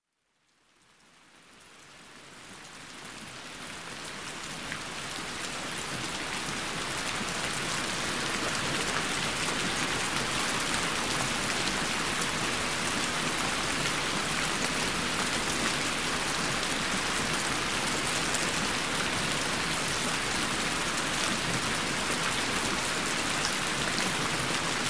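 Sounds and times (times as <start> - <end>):
rain: 0.1 - 24.8.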